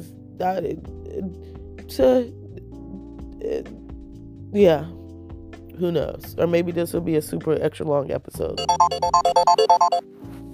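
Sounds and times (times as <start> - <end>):
speech: 0.0 - 2.4, 3.4 - 3.8, 4.5 - 5.0, 5.8 - 10.4
alarm going off: 8.6 - 10.0.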